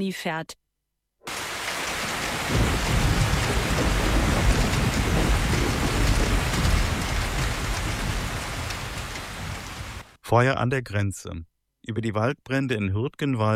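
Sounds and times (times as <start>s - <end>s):
speech: 0.0s - 0.6s, 10.3s - 13.5s
heavy rain in a forest: 1.3s - 10.2s
deep rumbling undertone: 2.4s - 10.0s.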